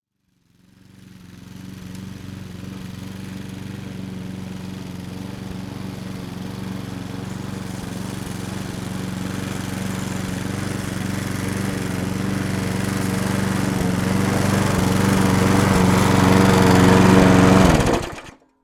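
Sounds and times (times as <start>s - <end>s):
lawn mower: 0.2s - 18.4s.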